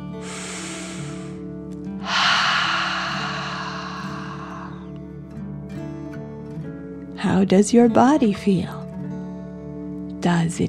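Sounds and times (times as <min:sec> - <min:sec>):
deep breath in through the nose and out through the mouth: 0:00.0 - 0:05.0
speech: 0:07.2 - 0:08.8, 0:10.2 - 0:10.6.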